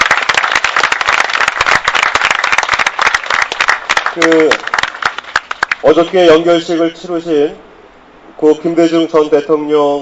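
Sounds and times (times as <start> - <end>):
audience applause: 0.0 - 5.8
speech: 4.2 - 4.7, 5.8 - 7.7, 8.4 - 10.0.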